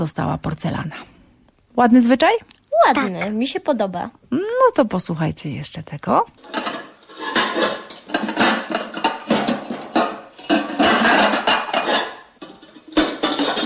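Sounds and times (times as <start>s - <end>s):
speech: 0.0s - 1.1s, 1.8s - 6.8s
frying pans scraping against each other: 6.4s - 13.6s.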